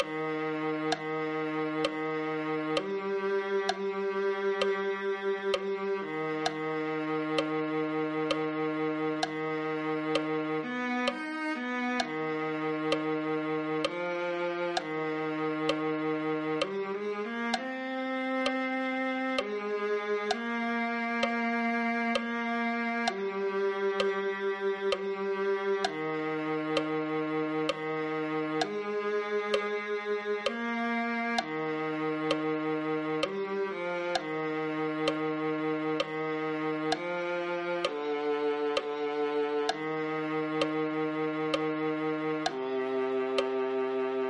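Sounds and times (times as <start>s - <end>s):
viola: 0.0s - 44.2s.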